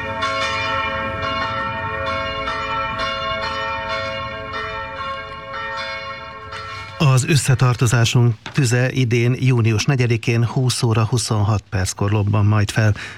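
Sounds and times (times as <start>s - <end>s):
church bell ringing from app test: 0.0s - 8.2s
speech: 7.2s - 13.1s.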